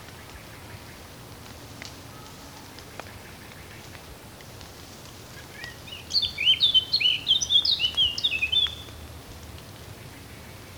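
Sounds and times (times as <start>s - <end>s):
background hiss: 0.0s - 10.7s
Eurasian blackcap warbling song: 5.4s - 9.0s.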